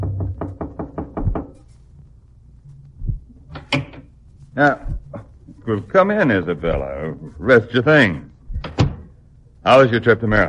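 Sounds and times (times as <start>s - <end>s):
knocking on a door: 0.0s - 1.6s
speech: 4.6s - 4.9s, 5.7s - 8.3s, 9.6s - 10.4s.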